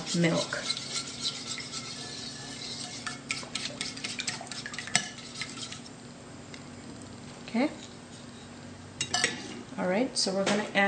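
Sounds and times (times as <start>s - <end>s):
spoon stirring maple syrup into milk: 0.0s - 6.0s
speech: 0.1s - 0.8s, 7.6s - 7.8s, 9.8s - 10.8s.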